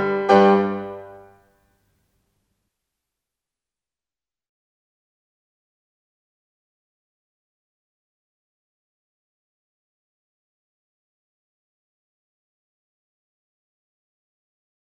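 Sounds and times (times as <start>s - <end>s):
piano sonata: 0.0s - 1.4s.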